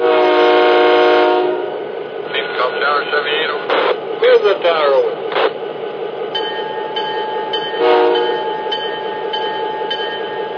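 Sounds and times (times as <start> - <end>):
freight train horn blast: 0.0 - 1.8, 7.8 - 8.6
freight train rolling by with wheel clacks: 0.0 - 10.5.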